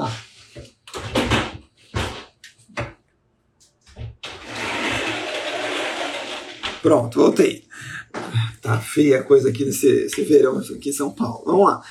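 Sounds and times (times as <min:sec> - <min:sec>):
window being closed at home: 0:04.2 - 0:06.9
speech: 0:06.8 - 0:07.6, 0:08.3 - 0:11.8.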